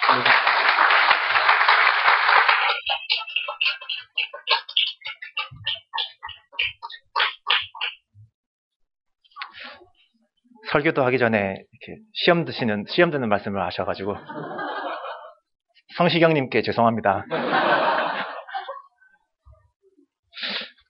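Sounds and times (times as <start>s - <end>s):
audience applause welcoming a pastor: 0.0s - 4.9s
speech: 0.1s - 0.5s, 10.8s - 14.6s, 16.0s - 18.0s
laughter: 0.1s - 7.6s, 14.0s - 15.5s, 17.3s - 19.0s.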